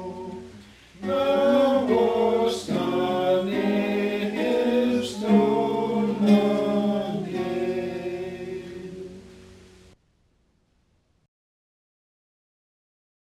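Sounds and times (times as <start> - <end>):
hymnbook songs sung in the Cheyenne language: 0.0 - 9.6.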